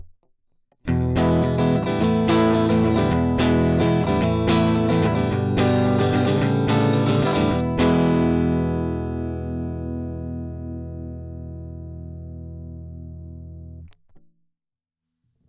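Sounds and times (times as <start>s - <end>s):
direct electric guitar crunch: 0.9s - 11.1s.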